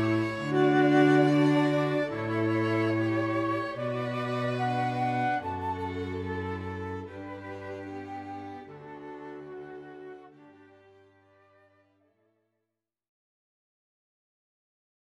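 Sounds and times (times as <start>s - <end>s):
flute quartet playing: 0.0s - 10.6s.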